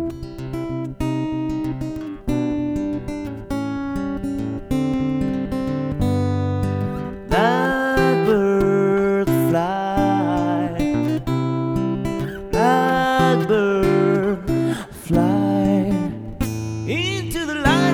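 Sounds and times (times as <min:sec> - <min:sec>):
guitar: 0:00.0 - 0:17.9
person singing solo: 0:07.1 - 0:17.9.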